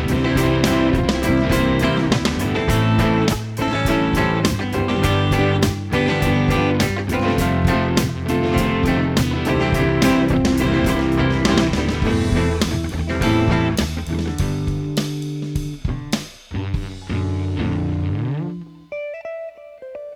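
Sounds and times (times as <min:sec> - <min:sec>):
drum samples mix: 0:00.0 - 0:18.8.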